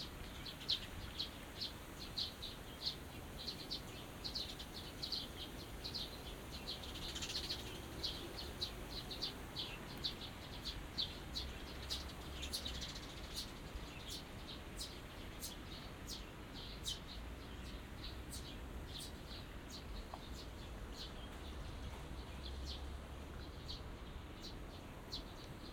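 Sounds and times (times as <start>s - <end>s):
small birds twittering: 0.0s - 25.7s.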